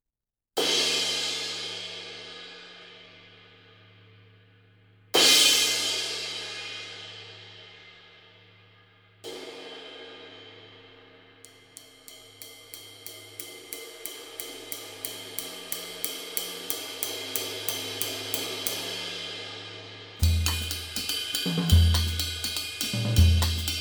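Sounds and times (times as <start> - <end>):
22-inch Sabian Artisan cymbal: 0.6 - 23.7.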